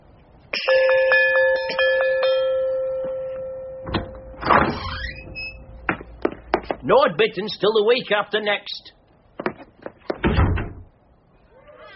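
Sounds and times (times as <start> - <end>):
visitor's doorbell ringing: 0.6 - 5.9
speech: 6.9 - 9.0.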